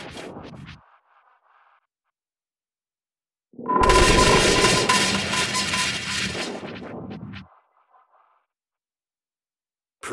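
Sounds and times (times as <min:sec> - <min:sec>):
digital glitch eruptions: 0:03.7 - 0:07.4.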